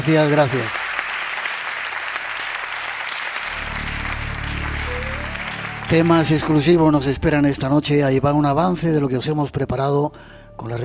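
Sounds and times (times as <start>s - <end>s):
speech: 0.0s - 0.8s, 5.9s - 10.8s
crowd applause: 0.0s - 7.2s.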